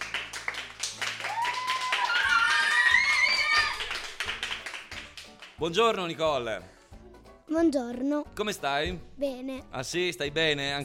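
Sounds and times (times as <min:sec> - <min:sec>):
audience applause welcoming a guest: 0:00.0 - 0:05.6
speech: 0:05.6 - 0:06.8, 0:07.5 - 0:10.8.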